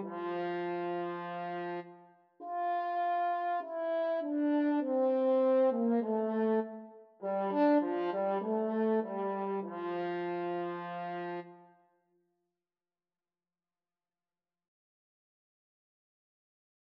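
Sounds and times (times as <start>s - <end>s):
clarinet and French horn duet: 0.0s - 11.6s.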